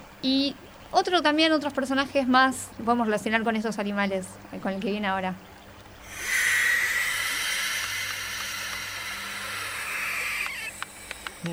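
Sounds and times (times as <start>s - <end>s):
speech: 0.2s - 5.5s
owl call: 6.0s - 11.5s.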